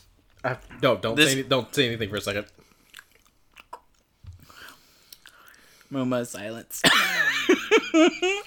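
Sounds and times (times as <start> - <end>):
speech: 0.4 - 2.6, 5.9 - 8.4
chewing a jelly bean: 2.4 - 5.7.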